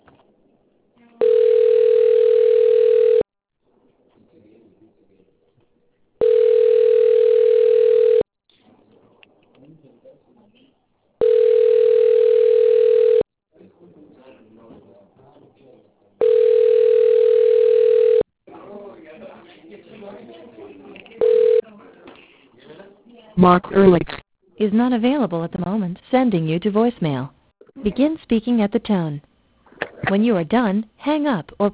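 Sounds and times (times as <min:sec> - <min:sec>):
telephone ringback tone while a call connects: 0:01.2 - 0:03.2, 0:06.2 - 0:08.2, 0:11.2 - 0:13.2, 0:16.2 - 0:18.2, 0:21.2 - 0:21.6
speech: 0:23.4 - 0:29.3, 0:30.1 - 0:31.7.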